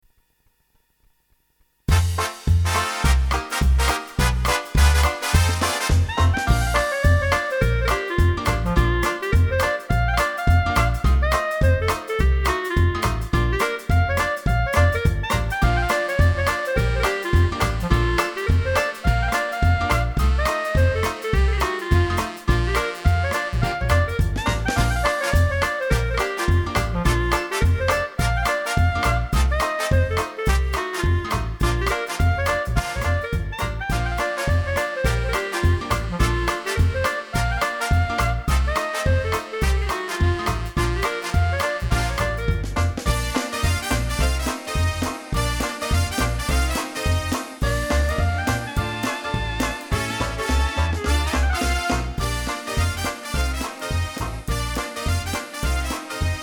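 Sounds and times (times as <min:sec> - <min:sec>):
blues music: 0:01.9 - 0:56.4.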